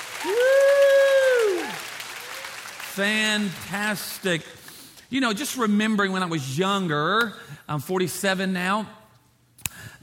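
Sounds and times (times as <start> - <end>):
audience clapping hands: 0.0 - 4.4
speech: 3.0 - 9.0.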